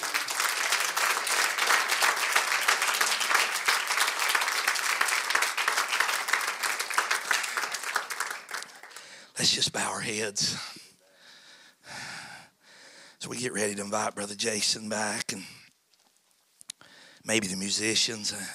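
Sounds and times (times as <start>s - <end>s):
audience hand clapping in praise: 0.0s - 9.2s
speech: 9.4s - 10.8s, 13.4s - 15.6s, 17.3s - 18.5s.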